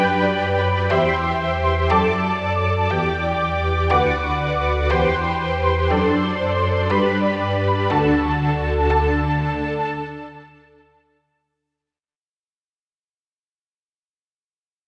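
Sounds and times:
polyphonic synthesizer: 0.0 - 10.8.

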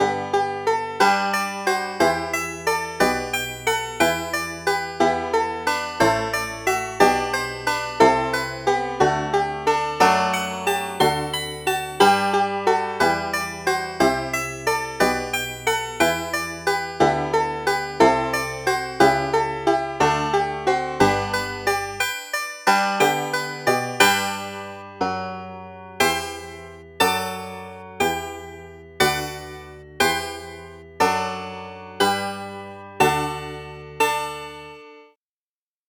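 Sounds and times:
banjo: 0.0 - 34.6.

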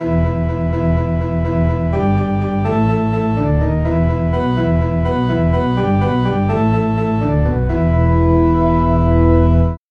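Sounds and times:
church organ bass: 0.0 - 9.8.

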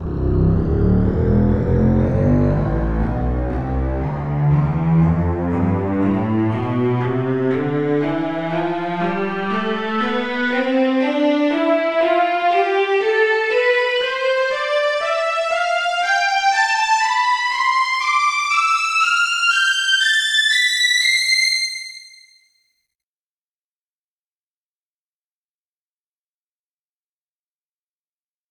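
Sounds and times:
strings: 0.0 - 22.3.

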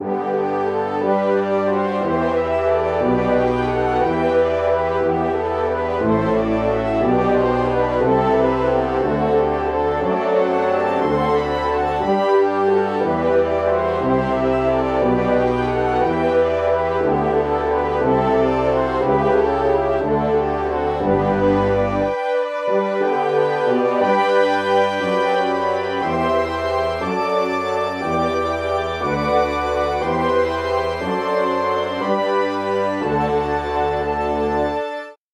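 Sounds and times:
French horns: 0.0 - 35.1.

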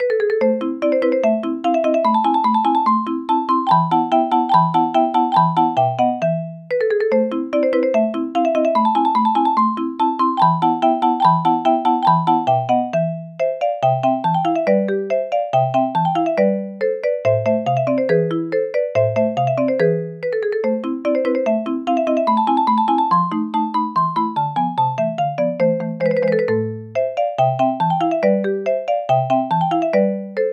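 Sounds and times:
marimba: 0.0 - 30.5.

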